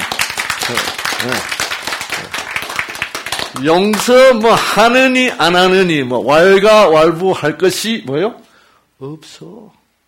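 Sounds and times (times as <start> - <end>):
clapping: 0.0 - 5.6
speech: 0.7 - 1.6, 3.5 - 8.4, 9.0 - 9.8.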